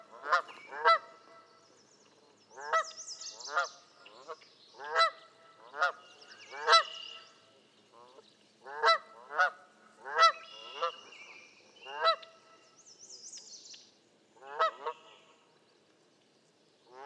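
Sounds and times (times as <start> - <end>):
Canada goose honking: 0.0 - 1.5, 3.5 - 7.3, 8.7 - 11.0, 14.4 - 15.1.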